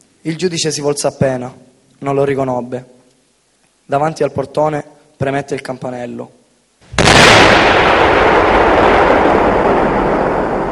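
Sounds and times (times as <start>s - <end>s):
speech: 0.2s - 3.0s, 3.9s - 7.0s
explosion: 6.8s - 10.7s.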